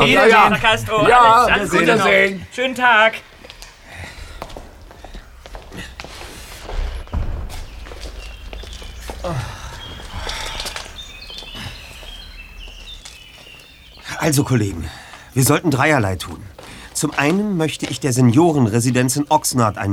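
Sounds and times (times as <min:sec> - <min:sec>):
speech: 0:00.0 - 0:03.3, 0:09.2 - 0:09.5, 0:14.2 - 0:19.9
footsteps of people walking away: 0:03.2 - 0:19.3.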